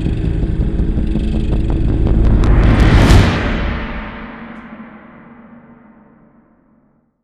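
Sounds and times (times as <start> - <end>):
reverse drum: 0.2 - 6.1
synth sting: 1.0 - 6.4.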